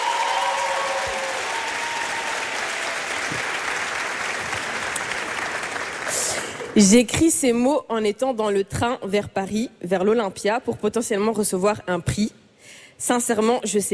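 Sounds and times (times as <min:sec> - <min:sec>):
audience applause for a group of nominated artists: 0:00.0 - 0:06.8
speech: 0:06.8 - 0:12.4, 0:13.0 - 0:13.9.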